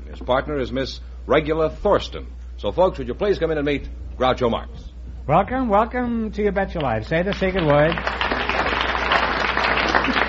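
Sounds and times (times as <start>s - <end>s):
speech: 0.2s - 8.3s
studio audience applause: 7.2s - 10.2s.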